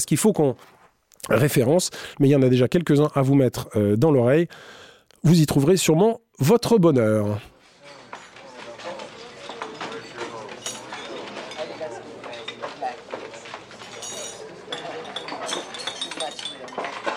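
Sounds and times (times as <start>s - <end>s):
speech: 0.0s - 7.5s
murmur of many voices in a restaurant or bistro: 7.5s - 17.1s
glasses and dishes clinking: 7.6s - 17.1s.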